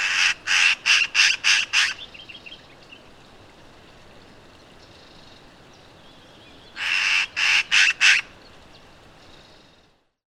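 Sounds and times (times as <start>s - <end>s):
Eurasian magpie Pica pica rattling calls: 0.0s - 2.0s, 6.8s - 8.3s.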